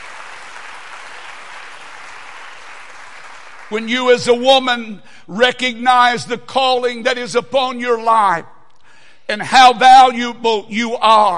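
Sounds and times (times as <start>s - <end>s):
audience clapping hands: 0.0s - 3.9s
speech: 3.7s - 8.5s, 9.3s - 11.3s.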